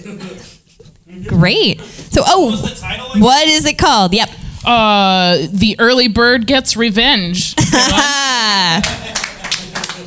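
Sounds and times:
speech: 0:00.0 - 0:09.0
laughter: 0:07.6 - 0:10.0
audience applause: 0:08.8 - 0:10.0.

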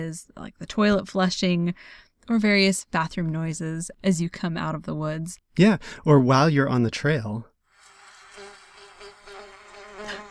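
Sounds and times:
speech: 0:00.0 - 0:07.5
bumblebee buzzing: 0:07.7 - 0:10.2.

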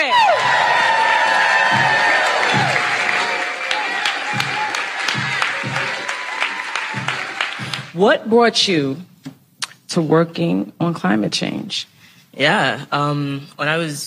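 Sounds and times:
whoops and shouts: 0:00.0 - 0:07.9
studio audience cheering and applauding to welcome a guest: 0:00.0 - 0:08.0
speech: 0:08.0 - 0:09.1, 0:10.0 - 0:14.0.

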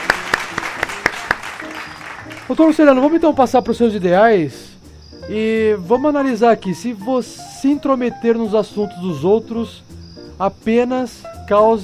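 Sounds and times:
hand claps: 0:00.0 - 0:03.2
speech: 0:02.5 - 0:11.8.

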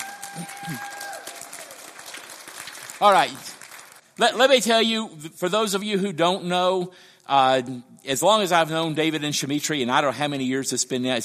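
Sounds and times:
audience clapping at a church gathering: 0:00.0 - 0:04.5
speech: 0:00.4 - 0:01.0, 0:03.0 - 0:03.5, 0:04.2 - 0:11.2.

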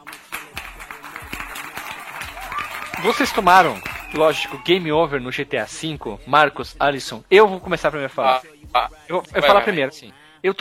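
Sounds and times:
applause sound effect: 0:00.0 - 0:05.0
speech: 0:03.0 - 0:10.5.

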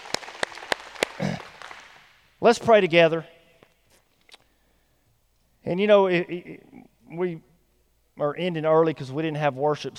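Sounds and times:
audience clapping: 0:00.0 - 0:02.2
speech: 0:02.4 - 0:03.4, 0:05.7 - 0:07.5, 0:08.2 - 0:09.9.

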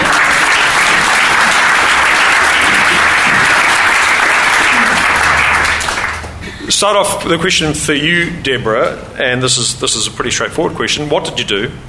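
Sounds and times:
audience applause welcoming three panellists at a panel event: 0:00.0 - 0:06.5
speech: 0:06.7 - 0:11.8.

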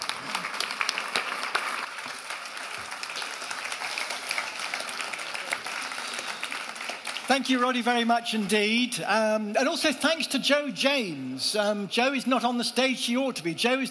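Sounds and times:
audience applause welcoming a speaker on stage at a talk: 0:00.0 - 0:08.7
speech: 0:07.3 - 0:13.8.

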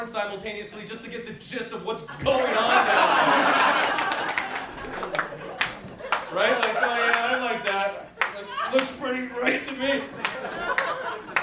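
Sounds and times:
speech: 0:00.0 - 0:04.2, 0:06.3 - 0:07.2, 0:08.7 - 0:10.8
laughter: 0:01.9 - 0:11.4
audience clapping: 0:02.8 - 0:09.1, 0:10.2 - 0:11.4.

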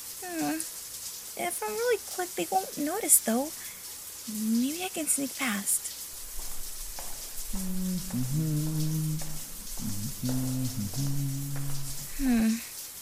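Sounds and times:
shower water running: 0:00.0 - 0:13.0
speech: 0:01.4 - 0:05.9, 0:07.6 - 0:08.8
person humming a wordless tune: 0:06.3 - 0:12.7.

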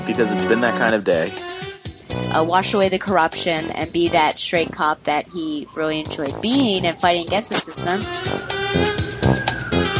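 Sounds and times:
speech: 0:00.1 - 0:01.5, 0:02.1 - 0:09.4
passing emergency vehicle siren: 0:05.0 - 0:09.9.

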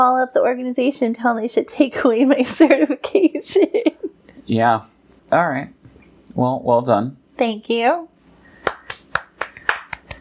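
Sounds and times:
speech: 0:00.0 - 0:05.8, 0:06.4 - 0:08.1
light polite tennis-style hand clapping: 0:08.6 - 0:10.1.

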